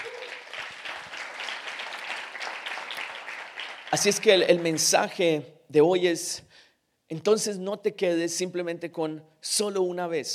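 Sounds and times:
audience applause: 0.0 - 4.9
speech: 3.9 - 10.3.

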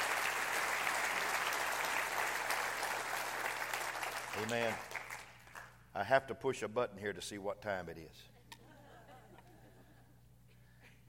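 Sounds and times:
audience clapping hands: 0.0 - 5.8
speech: 4.4 - 5.0, 6.0 - 8.3.

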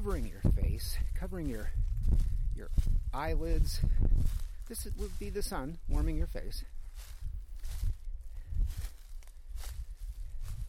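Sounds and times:
speech: 0.0 - 7.2
footsteps crunching through dry leaves: 0.0 - 10.6.

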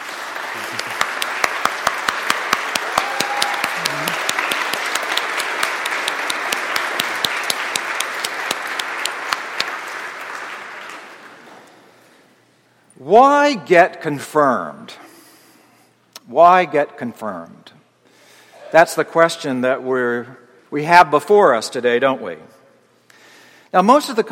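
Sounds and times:
audience applause: 0.0 - 11.6
speech: 0.6 - 1.0, 13.1 - 15.0, 16.3 - 17.8, 18.7 - 22.6, 23.7 - 24.2.

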